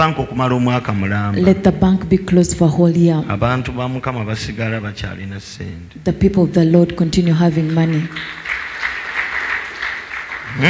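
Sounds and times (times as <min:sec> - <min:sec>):
speech: 0:00.0 - 0:08.4
church congregation clapping hands during a sermon: 0:07.3 - 0:10.6.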